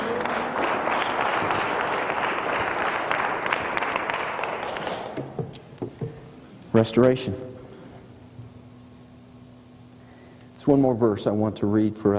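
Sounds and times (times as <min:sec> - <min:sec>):
audience clapping: 0:00.0 - 0:05.4
speech: 0:06.8 - 0:07.5, 0:10.6 - 0:12.1.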